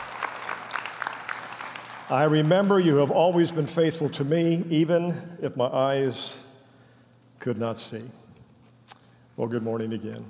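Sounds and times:
group applauding: 0.0s - 3.1s
speech: 2.1s - 6.4s, 7.4s - 8.2s, 9.4s - 10.2s.

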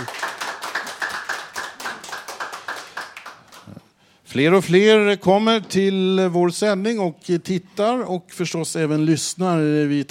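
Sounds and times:
small group clapping: 0.0s - 4.0s
speech: 4.3s - 10.0s.

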